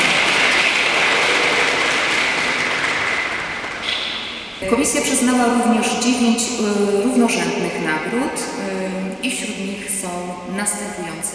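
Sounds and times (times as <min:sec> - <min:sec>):
crowd applauding: 0:00.0 - 0:04.6
speech: 0:04.7 - 0:11.3.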